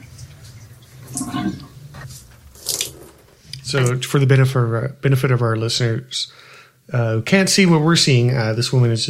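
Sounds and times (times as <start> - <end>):
wet clothes being wrung out in shower water: 0.1 - 3.3
speech: 3.7 - 9.0.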